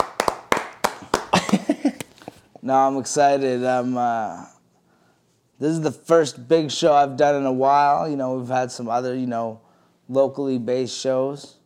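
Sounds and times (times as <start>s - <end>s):
edited-in round of applause: 0.0s - 1.8s
speech: 2.6s - 4.6s, 5.6s - 11.6s.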